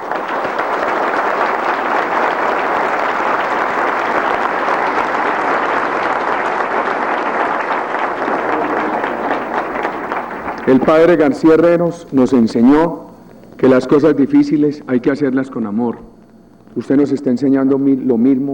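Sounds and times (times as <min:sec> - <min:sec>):
audience applause: 0:00.0 - 0:11.5
speech: 0:10.7 - 0:13.0, 0:13.6 - 0:16.1, 0:16.8 - 0:18.5.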